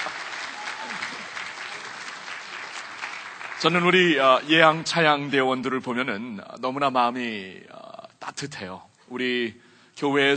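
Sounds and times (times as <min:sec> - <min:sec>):
audience applause: 0:00.0 - 0:04.8
speech: 0:03.6 - 0:10.3.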